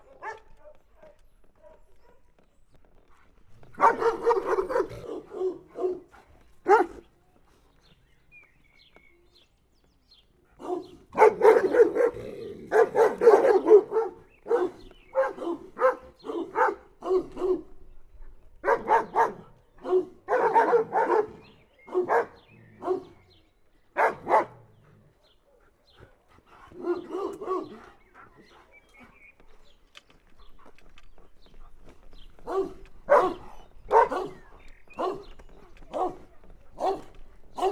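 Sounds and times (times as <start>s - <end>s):
village guard dog in a farmyard: 0.0s - 2.4s, 3.1s - 7.1s, 10.6s - 17.7s, 18.6s - 23.2s, 24.0s - 29.3s, 30.4s - 37.6s.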